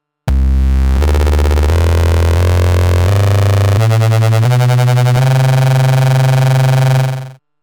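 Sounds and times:
Waverazor dual oscillator synthesizer tone: 0.3s - 7.4s.

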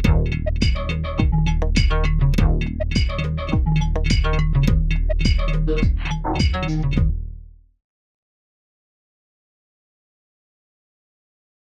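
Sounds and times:
KORG wavestate synthesizer rhythm set with joystick: 0.0s - 7.3s.

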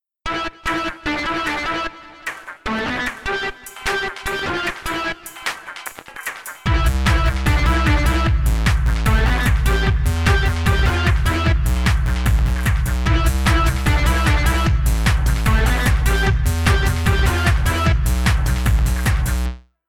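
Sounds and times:
techno music: 0.3s - 19.6s.

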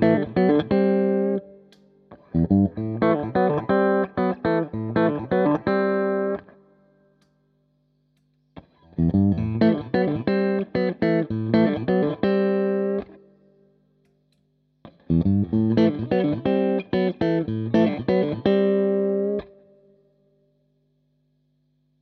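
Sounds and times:
hybrid picking guitar: 0.0s - 6.5s, 8.6s - 13.2s, 14.9s - 19.5s.

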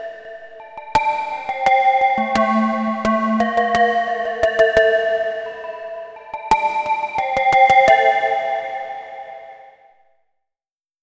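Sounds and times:
melodic electronic drum sounds: 0.6s - 8.0s.

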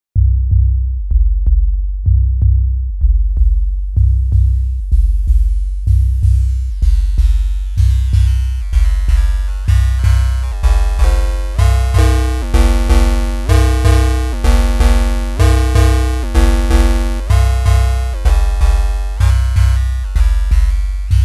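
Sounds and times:
Korg Volca Drum bitcrushed: 0.2s - 21.2s.

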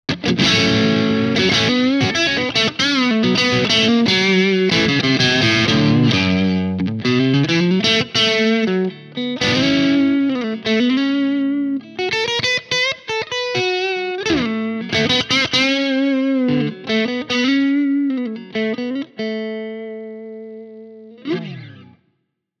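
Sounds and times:
clean guitar through Mooer Preamp Model X: 0.1s - 22.1s.

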